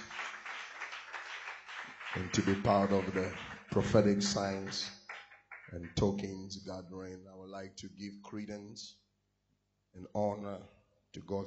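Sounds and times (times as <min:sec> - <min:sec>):
crowd clapping hands: 0:00.0 - 0:06.3
speech: 0:02.2 - 0:05.0, 0:05.7 - 0:09.0, 0:10.0 - 0:11.4.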